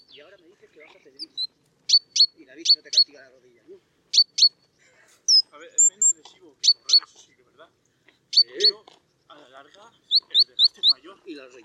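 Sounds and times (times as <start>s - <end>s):
great tit calling: 0.0s - 3.2s, 4.1s - 4.7s, 5.3s - 7.2s, 8.3s - 9.2s, 9.9s - 11.1s.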